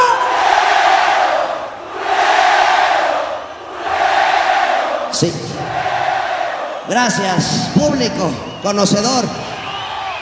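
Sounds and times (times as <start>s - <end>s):
crowd chanting loudly in unison: 0.0s - 6.8s
speech: 5.2s - 5.5s, 6.9s - 9.5s.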